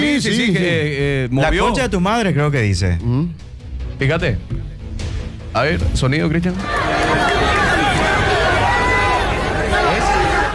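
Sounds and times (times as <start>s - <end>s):
speech: 0.1s - 4.7s, 5.5s - 7.5s
stadium crowd shouting: 6.6s - 10.5s.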